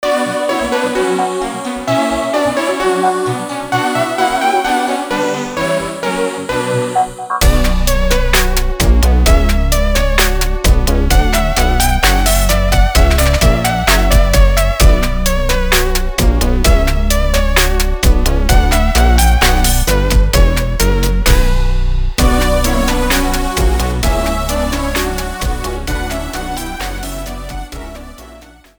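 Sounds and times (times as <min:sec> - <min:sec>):
orchestral suite rondeau fragments: 0:00.0 - 0:28.7.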